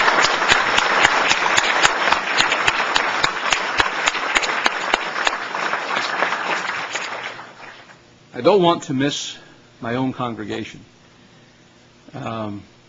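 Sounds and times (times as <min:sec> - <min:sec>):
audience applause: 0:00.0 - 0:08.0
speech: 0:08.4 - 0:11.0, 0:12.1 - 0:12.8.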